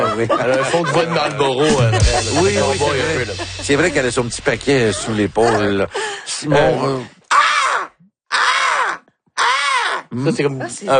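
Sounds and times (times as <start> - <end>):
laughter: 0.0 - 6.0
speech: 0.2 - 7.2, 10.1 - 10.9
person imitating crow caws: 7.3 - 10.1.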